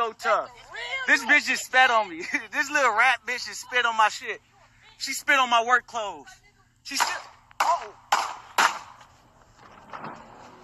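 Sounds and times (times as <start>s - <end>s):
speech: 0.1s - 8.0s
gunshot: 7.0s - 9.0s.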